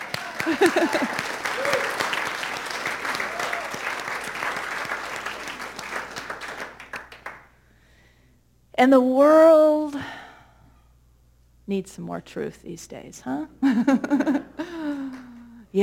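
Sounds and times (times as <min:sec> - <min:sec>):
laughter: 0:00.0 - 0:02.0, 0:13.6 - 0:15.4
audience clapping: 0:00.0 - 0:07.5, 0:14.8 - 0:15.6
speech: 0:00.4 - 0:02.0, 0:08.8 - 0:10.1, 0:11.7 - 0:14.4.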